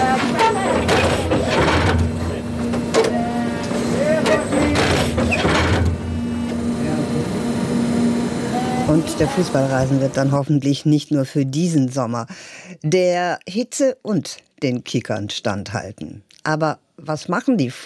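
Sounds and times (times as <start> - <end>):
Italian specialist firm turf stitching vehicle setting fibres into a stadium pitch: 0.0 - 10.6
turf stitching vehicle clattering: 0.2 - 3.1, 4.2 - 6.1
speech: 9.2 - 17.8.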